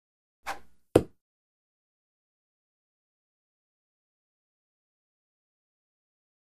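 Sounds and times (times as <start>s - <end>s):
dart throw with feather whoosh: 0.5s - 0.8s
dart hitting target: 0.5s - 1.2s.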